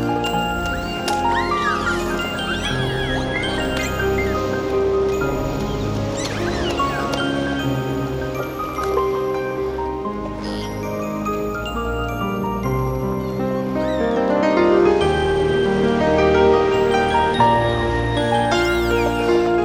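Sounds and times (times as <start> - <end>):
seagulls calling: 0.0 - 15.4, 16.6 - 19.6
nature ambience: 0.0 - 19.6.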